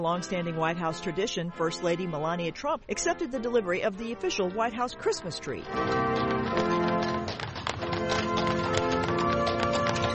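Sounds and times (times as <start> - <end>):
speech: 0.0 - 6.8
horse hooves clopping, drawing a carriage: 4.2 - 10.1.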